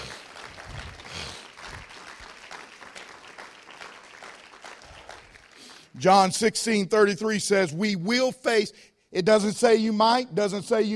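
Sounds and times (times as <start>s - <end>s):
audience clapping hands in praise: 0.0s - 6.2s
speech: 6.0s - 10.9s.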